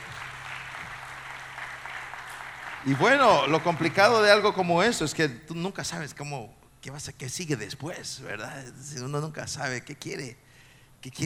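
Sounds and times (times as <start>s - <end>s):
audience clapping in praise: 0.0s - 5.0s
speech: 2.8s - 10.4s, 11.0s - 11.2s.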